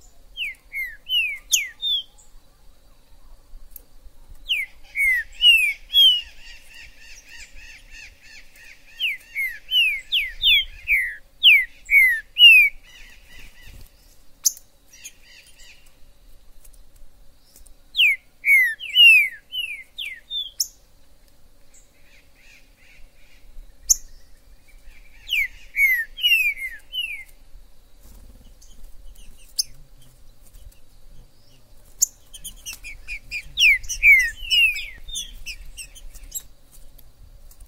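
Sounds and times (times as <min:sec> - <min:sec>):
green-winged saltator song: 0:00.0 - 0:02.3, 0:04.4 - 0:13.8, 0:17.9 - 0:20.8, 0:21.8 - 0:27.4, 0:28.4 - 0:29.8, 0:32.0 - 0:36.5.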